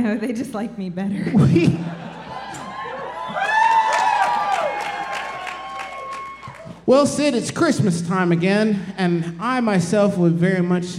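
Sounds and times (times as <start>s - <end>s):
speech: 0.0s - 2.2s, 6.9s - 10.9s
laughter: 1.2s - 3.4s
crowd cheering and whooping: 2.0s - 6.9s
audience applause: 2.3s - 6.9s.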